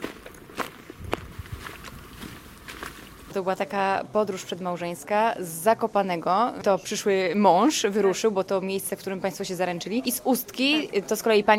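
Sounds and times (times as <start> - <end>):
footsteps of a person walking: 0.0 - 3.4
speech: 3.4 - 11.5.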